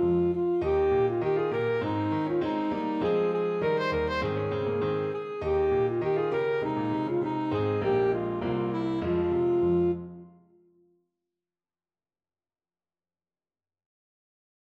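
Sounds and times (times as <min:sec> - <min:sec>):
alto saxophone: 0:00.0 - 0:10.6.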